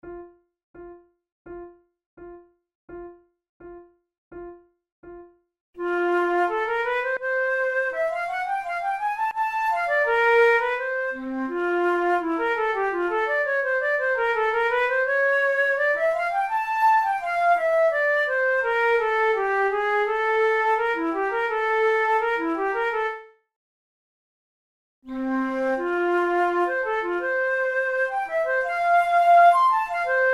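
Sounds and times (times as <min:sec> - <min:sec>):
flute: 0:05.8 - 0:23.2, 0:25.1 - 0:30.3.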